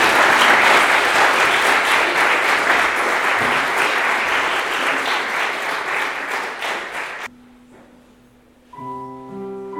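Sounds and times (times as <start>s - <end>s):
audience applause: 0.0s - 7.3s.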